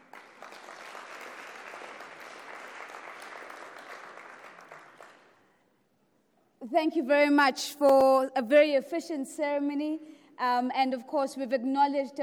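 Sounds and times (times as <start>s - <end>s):
audience applause: 0.0s - 5.3s
speech: 6.6s - 12.2s.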